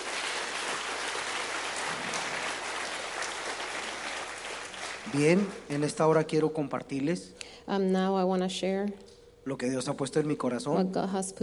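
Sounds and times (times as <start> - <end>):
audience applause: 0.0 - 5.8
speech: 5.1 - 11.4.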